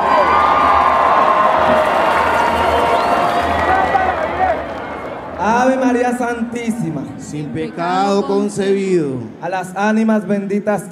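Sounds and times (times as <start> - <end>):
audience applause and cheering: 0.0 - 7.4
speech: 6.1 - 10.9.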